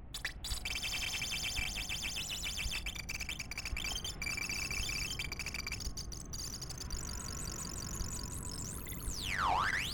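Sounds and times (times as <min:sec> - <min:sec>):
digital glitches: 0:00.2 - 0:09.9.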